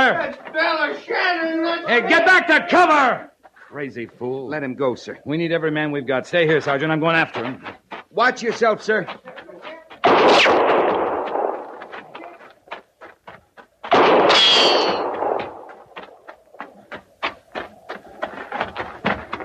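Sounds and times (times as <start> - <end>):
speech: 0.1 - 9.5
gunshots as a soldier shoots a horse in an audio drama: 10.0 - 12.2, 13.9 - 16.0.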